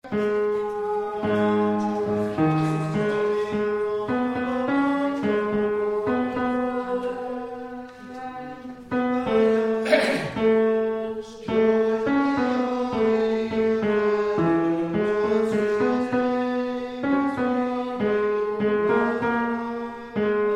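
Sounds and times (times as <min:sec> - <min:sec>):
tenor singing: 0:00.0 - 0:20.5.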